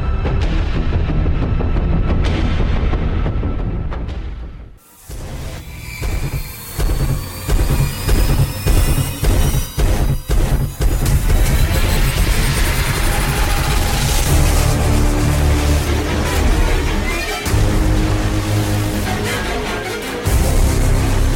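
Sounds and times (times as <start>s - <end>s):
film score music: 0.0s - 21.3s.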